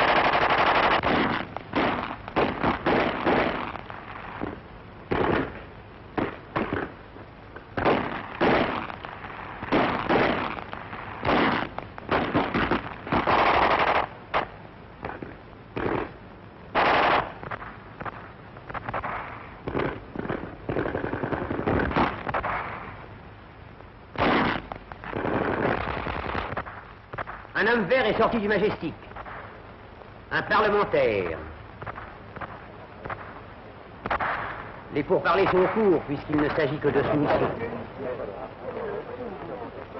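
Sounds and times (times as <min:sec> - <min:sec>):
machine gun fire: 0:00.0 - 0:03.8, 0:04.4 - 0:06.9, 0:07.8 - 0:09.0, 0:09.6 - 0:15.2, 0:15.8 - 0:22.9, 0:24.2 - 0:27.4
speech: 0:27.7 - 0:29.1, 0:30.3 - 0:31.5, 0:35.0 - 0:38.6.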